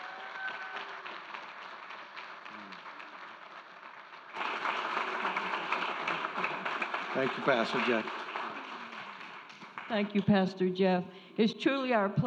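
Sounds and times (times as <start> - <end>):
church congregation clapping to welcome two guest pastors: 0.0 - 10.6
speech: 7.2 - 8.2, 9.9 - 12.2.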